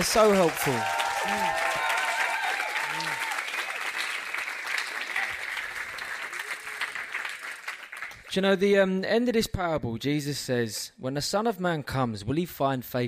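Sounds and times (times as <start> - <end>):
speech: 0.0 - 1.7, 8.4 - 13.0
crowd applause: 0.0 - 8.2.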